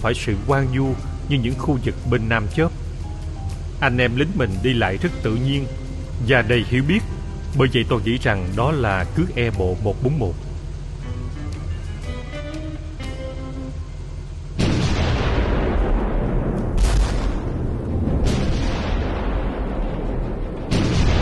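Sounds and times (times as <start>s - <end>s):
speech: 0.0s - 2.8s, 3.8s - 10.4s
steady tonal humming: 0.0s - 21.2s
four to five 105 mm artillery guns firing from the middle of a road: 14.6s - 20.1s, 20.7s - 21.2s.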